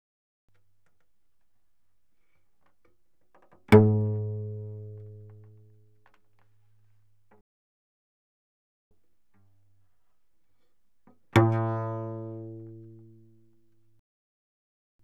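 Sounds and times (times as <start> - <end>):
cello pizzicato fortissimo on the C string, C2 to A2: 2.9 - 7.3, 9.3 - 14.0.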